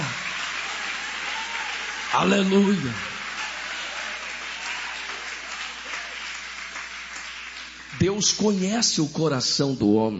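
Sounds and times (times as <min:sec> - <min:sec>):
audience applause: 0:00.0 - 0:09.0
speech: 0:02.1 - 0:03.1, 0:08.1 - 0:10.1.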